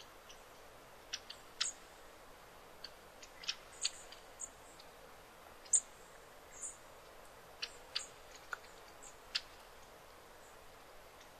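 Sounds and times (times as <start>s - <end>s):
insect chirps and ticks in a forest thicket: 0.0s - 2.0s, 2.8s - 5.0s, 5.6s - 11.3s
faint steady hiss: 0.0s - 11.3s.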